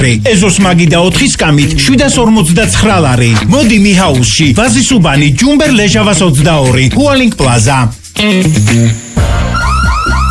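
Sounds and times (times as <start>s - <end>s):
speech: 0.0s - 9.4s
electronic alarm siren: 9.2s - 10.3s.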